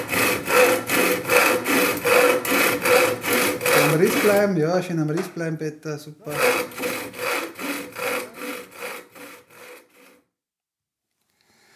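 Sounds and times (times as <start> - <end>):
hand saw cutting through wood: 0.0 - 4.6, 6.3 - 10.2
speech: 4.2 - 6.7.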